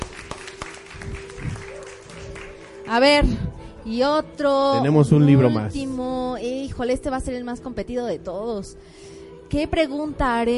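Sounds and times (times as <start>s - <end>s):
audience applause: 0.0s - 2.9s
speech: 2.9s - 10.5s.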